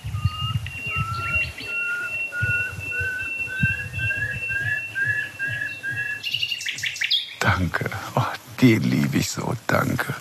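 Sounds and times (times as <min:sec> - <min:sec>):
nightingale singing near dead oak trees: 0:00.0 - 0:07.7
speech: 0:08.6 - 0:10.2.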